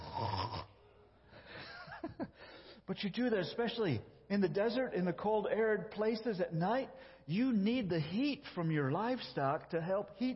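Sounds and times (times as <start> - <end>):
person imitating snoring: 0.0 - 0.8
speech: 2.9 - 10.3.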